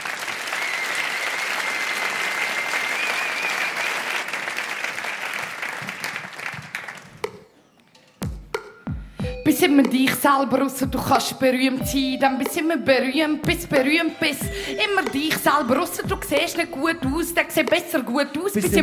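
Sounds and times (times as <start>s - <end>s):
audience applause: 0.0s - 7.2s
speech: 9.6s - 18.8s.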